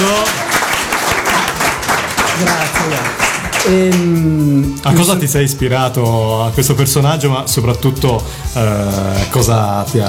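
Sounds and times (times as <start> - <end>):
audience applause: 0.0 - 4.1
speech: 3.6 - 10.0.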